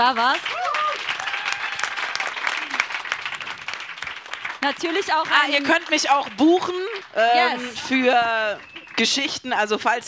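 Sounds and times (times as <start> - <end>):
audience applause: 0.0 - 9.3
speech: 4.6 - 10.0
whistle-like tone: 8.6 - 9.2.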